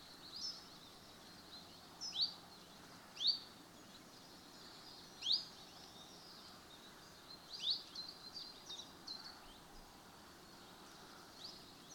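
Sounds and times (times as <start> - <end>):
common chiffchaff song: 0.0 - 11.9.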